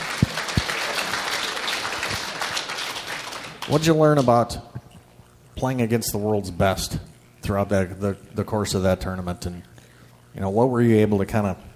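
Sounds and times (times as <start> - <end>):
audience applause: 0.0 - 4.4
speech: 3.7 - 4.8, 5.6 - 9.7, 10.4 - 11.7.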